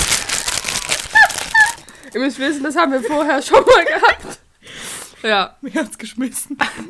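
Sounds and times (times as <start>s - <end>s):
wrapping paper crinkling and rustling: 0.0s - 3.8s
speech: 2.1s - 4.4s, 5.2s - 6.8s.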